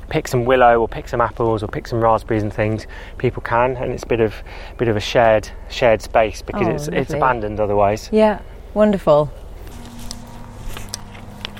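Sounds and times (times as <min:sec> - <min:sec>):
low steady hum: 0:00.0 - 0:11.5
speech: 0:00.1 - 0:09.4
footsteps along an overgrown allotment path: 0:09.6 - 0:11.5.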